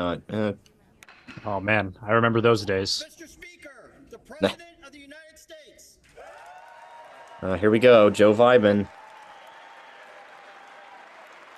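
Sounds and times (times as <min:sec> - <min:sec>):
speech: 0:00.0 - 0:00.7, 0:01.3 - 0:03.5, 0:04.3 - 0:04.7, 0:07.4 - 0:09.0
large audience applause in a big hall: 0:06.0 - 0:11.5.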